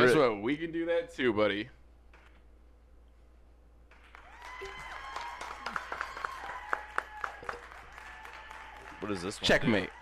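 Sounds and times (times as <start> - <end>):
speech: 0.0 - 1.8, 9.0 - 10.0
added applause track: 3.9 - 10.0.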